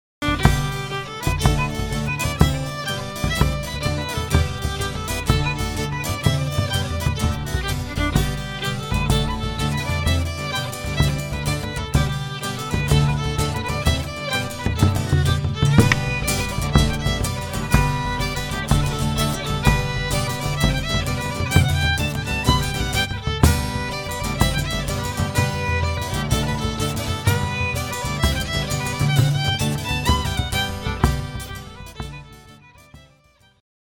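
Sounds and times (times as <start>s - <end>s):
jig tune: 0.2s - 33.1s.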